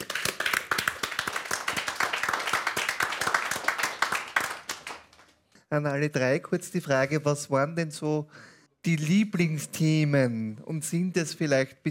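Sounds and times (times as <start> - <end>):
audience applause: 0.0 - 5.3
speech: 5.7 - 11.8.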